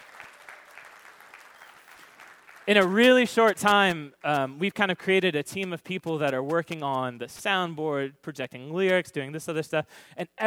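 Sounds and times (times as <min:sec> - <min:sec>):
faint applause for a church technical team: 0:00.0 - 0:02.9
speech: 0:02.7 - 0:10.4.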